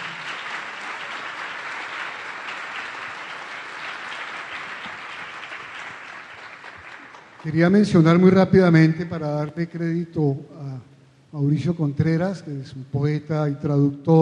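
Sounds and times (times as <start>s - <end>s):
audience applause for poets: 0.0s - 7.8s
speech: 7.4s - 10.6s, 11.3s - 14.1s.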